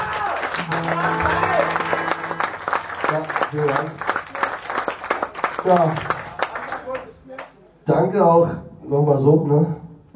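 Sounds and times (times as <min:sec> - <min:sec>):
audience applause: 0:00.0 - 0:07.5
speech: 0:03.1 - 0:04.1, 0:05.6 - 0:06.1, 0:07.9 - 0:09.8.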